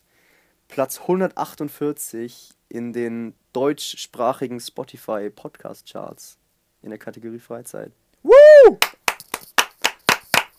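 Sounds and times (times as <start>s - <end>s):
speech: 0.8s - 9.0s
short applause, hand clapping: 8.7s - 10.5s.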